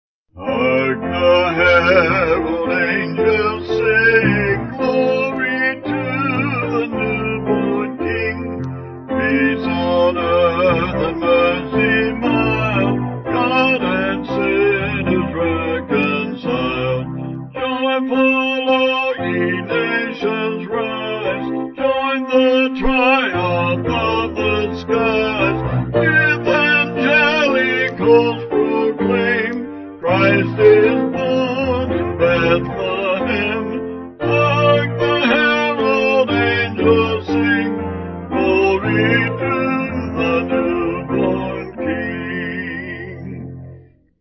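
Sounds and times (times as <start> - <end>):
vocals: 0.3 - 44.0
piano: 0.3 - 44.1.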